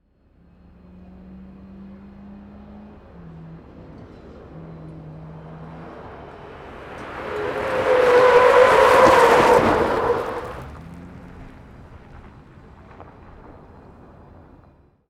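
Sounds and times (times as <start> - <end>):
car drifting around a corner: 0.4 - 14.4.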